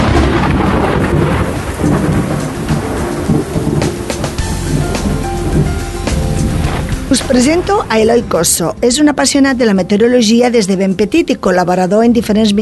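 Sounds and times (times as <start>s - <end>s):
steady heavy rain: 0.0s - 9.7s
loud continuous rumbling thunder: 0.0s - 10.6s
speech: 7.1s - 12.5s.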